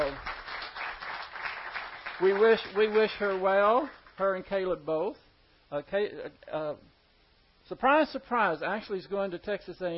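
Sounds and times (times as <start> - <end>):
audience applause for a student leaving for college: 0.0 - 4.0
speech: 2.2 - 6.9, 7.7 - 9.9.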